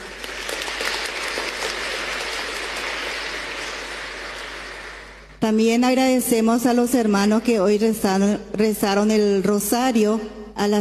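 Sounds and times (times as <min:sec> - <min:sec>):
audience applauding: 0:00.0 - 0:05.4
speech: 0:05.4 - 0:10.7.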